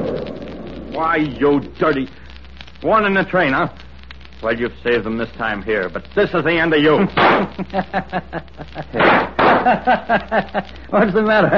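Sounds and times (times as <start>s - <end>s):
explosion sound effect: 0.0s - 1.0s, 7.1s - 7.7s, 8.9s - 9.9s
speech: 1.0s - 2.2s, 2.8s - 3.8s, 4.4s - 11.5s
laughter: 7.5s - 11.5s.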